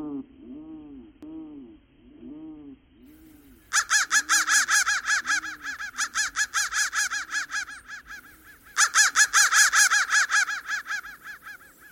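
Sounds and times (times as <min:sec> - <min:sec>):
crow cawing: 0:03.4 - 0:11.9.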